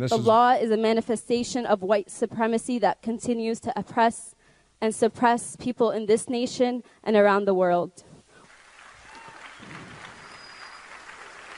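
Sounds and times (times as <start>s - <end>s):
speech: 0.0s - 8.1s
audience applauding: 8.4s - 11.5s.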